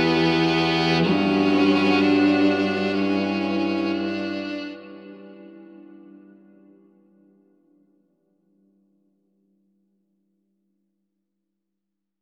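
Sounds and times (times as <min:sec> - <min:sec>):
Master Room MR-IV strings: 0:00.0 - 0:06.8.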